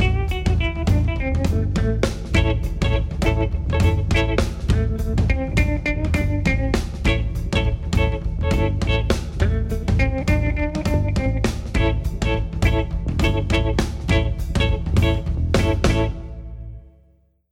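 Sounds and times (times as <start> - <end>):
blues drumming: 0.0 - 16.6.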